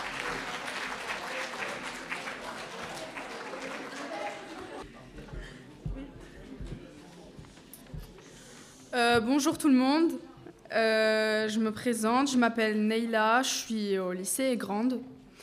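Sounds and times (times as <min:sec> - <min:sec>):
audience applause: 0:00.0 - 0:04.9
low thumps: 0:05.2 - 0:08.2
speech: 0:09.0 - 0:15.1.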